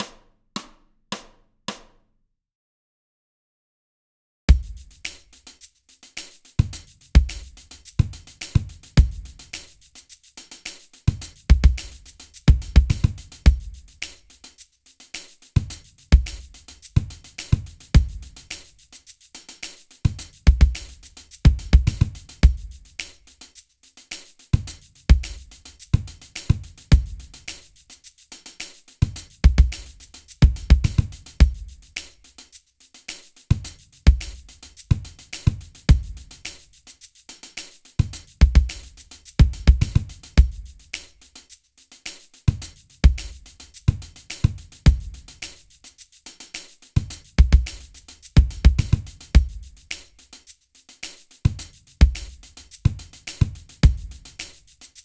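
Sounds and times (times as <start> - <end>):
fake drums: 0.0 - 2.0, 4.5 - 14.6, 15.6 - 32.4, 33.1 - 50.4, 51.0 - 55.0.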